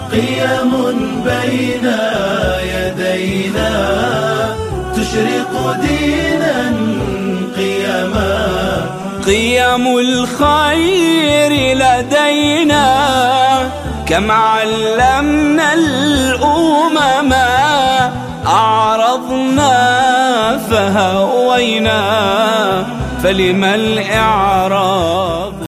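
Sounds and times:
Islamic music: 0.0 - 25.6.

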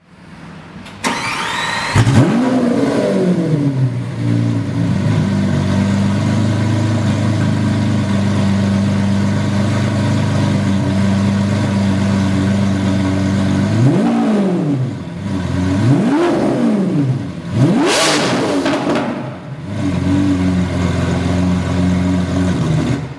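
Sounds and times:
Lamborghini Aventador: 0.0 - 23.1.

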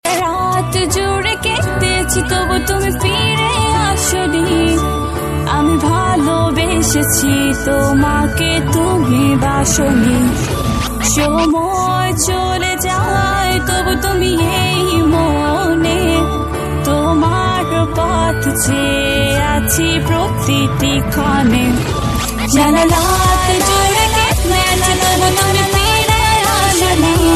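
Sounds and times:
Bangla ringtone music: 0.1 - 27.3.

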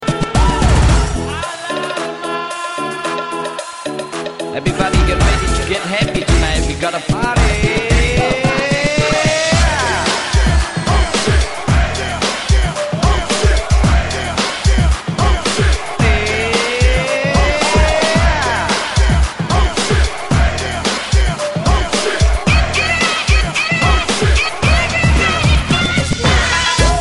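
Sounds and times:
remixed music: 0.0 - 26.9.

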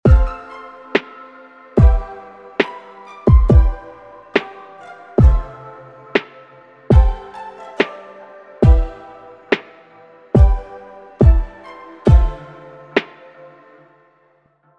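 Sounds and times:
chill music: 0.0 - 14.7.

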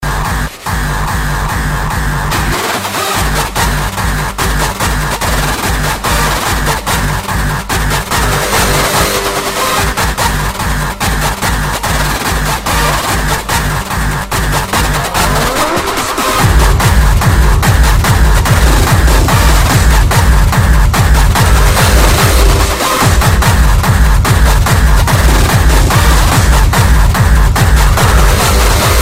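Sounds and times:
hardstyle music: 0.0 - 29.0.

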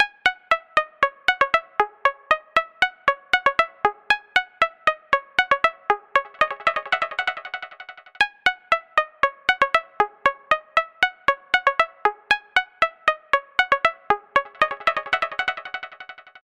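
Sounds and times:
melody with delay effect: 0.5 - 16.3.

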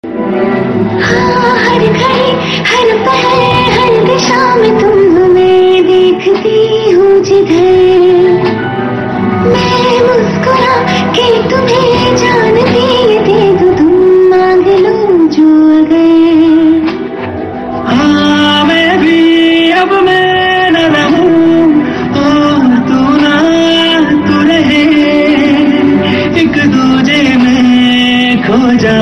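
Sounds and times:
sad music: 0.0 - 29.0.

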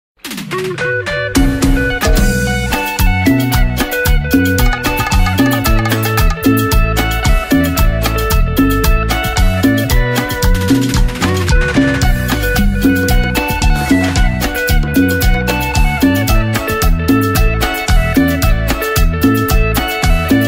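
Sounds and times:
cumbia music: 0.2 - 20.4.

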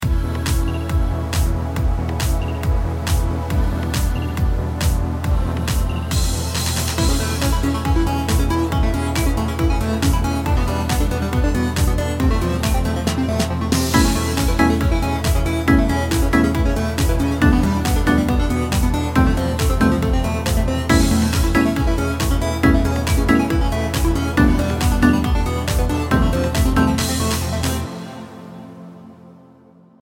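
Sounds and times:
relaxing electropop music: 0.0 - 29.9.

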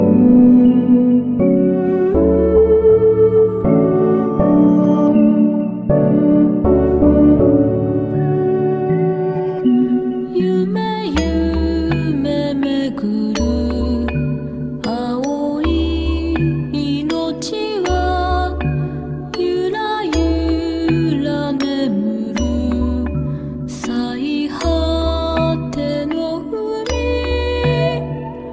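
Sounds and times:
lullaby music: 0.0 - 28.5.

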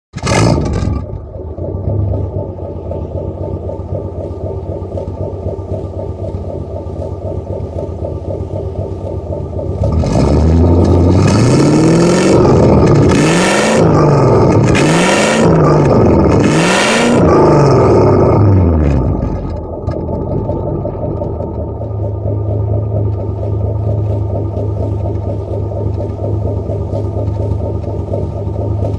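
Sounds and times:
1963 Chevy Impala station wagon: 0.1 - 28.9.

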